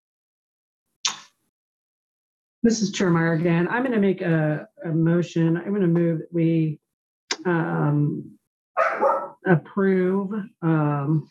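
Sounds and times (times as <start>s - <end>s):
speech: 2.6s - 6.8s, 7.4s - 11.3s
dog barking at home: 8.8s - 9.4s.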